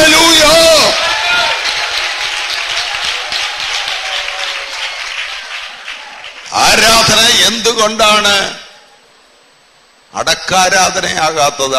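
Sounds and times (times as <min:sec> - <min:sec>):
church congregation clapping in praise of God: 0:00.0 - 0:07.6
speech: 0:07.8 - 0:08.6, 0:10.1 - 0:11.7.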